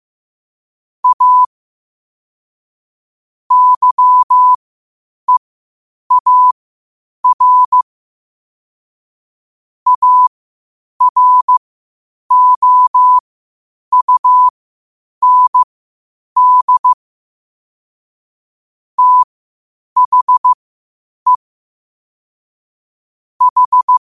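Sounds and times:
morse code at 5 wpm: 1.0 - 1.5, 3.5 - 4.6, 6.1 - 6.6, 7.2 - 7.8, 9.9 - 10.3, 11.0 - 11.6, 12.3 - 13.2, 13.9 - 14.5, 15.2 - 15.7, 16.4 - 17.0, 19.0 - 19.3, 20.0 - 20.6, 23.4 - 24.0.

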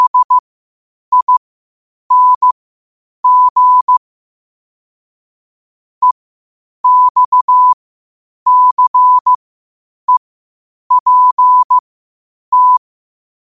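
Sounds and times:
morse code at 5 wpm: 0.0 - 0.4, 1.1 - 1.4, 2.1 - 2.5, 3.2 - 4.0, 6.8 - 7.8, 8.5 - 9.4, 10.9 - 11.8, 12.5 - 12.8.

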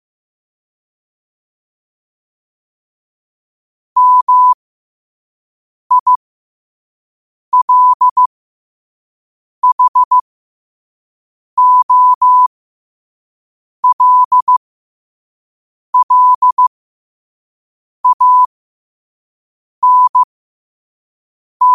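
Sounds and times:
morse code at 5 wpm: 4.0 - 4.6, 5.9 - 6.2, 7.6 - 8.3, 9.6 - 10.2, 11.6 - 12.5, 13.8 - 14.6, 16.0 - 16.7, 18.0 - 18.5, 19.8 - 20.3.

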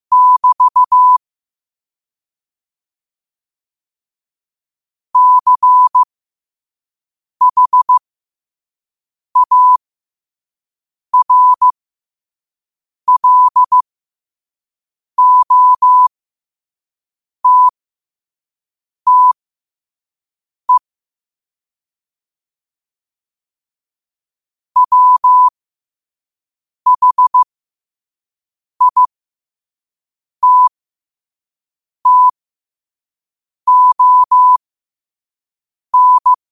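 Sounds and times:
morse code at 5 wpm: 0.1 - 1.2, 5.2 - 6.1, 7.4 - 8.0, 9.4 - 9.8, 11.2 - 11.7, 13.1 - 13.8, 15.2 - 16.1, 17.4 - 17.7, 19.1 - 19.4, 24.8 - 25.5, 26.9 - 27.5, 28.8 - 29.1, 30.4 - 30.7, 32.0 - 32.4, 33.7 - 34.6, 36.0 - 36.4.

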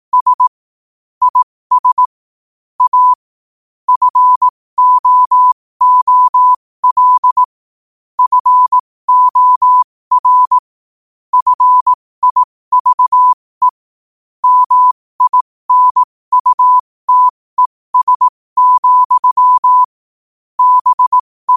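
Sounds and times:
morse code at 5 wpm: 0.1 - 0.5, 1.3 - 2.1, 2.8 - 3.2, 3.9 - 7.6, 8.2 - 10.6, 11.3 - 13.8, 14.4 - 19.9, 20.6 - 21.5.

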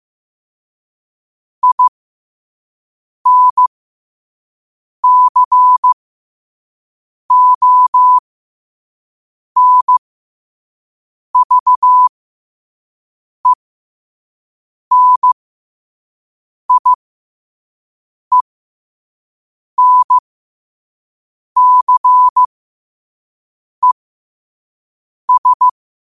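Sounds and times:
morse code at 5 wpm: 1.6 - 1.9, 3.3 - 3.7, 5.0 - 6.0, 7.3 - 8.2, 9.6 - 10.0, 11.4 - 12.1, 14.9 - 15.4, 16.7 - 17.0, 19.8 - 20.2, 21.6 - 22.5, 25.3 - 25.7.

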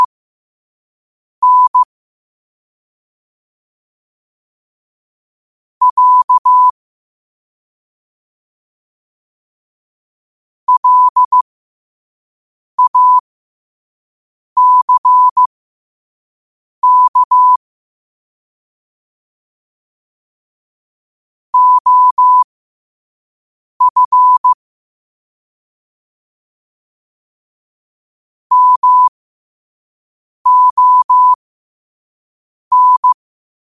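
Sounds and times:
morse code at 5 wpm: 1.4 - 1.9, 5.8 - 6.7, 10.7 - 11.4, 12.8 - 13.2, 14.6 - 15.5, 16.8 - 17.6, 21.6 - 22.5, 23.8 - 24.6, 28.5 - 29.1, 30.5 - 31.4, 32.7 - 33.2.

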